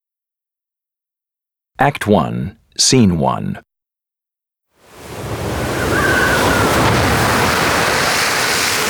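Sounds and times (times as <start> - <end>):
speech: 1.8 - 3.7
thunder in a terrible storm: 5.2 - 8.8.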